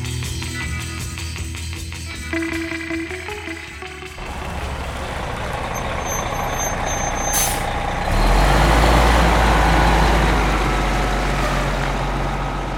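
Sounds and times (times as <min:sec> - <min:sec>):
large motor coaches rumbling out of a transit center: 0:02.8 - 0:12.7
motor coach air brakes hissing: 0:05.6 - 0:07.8.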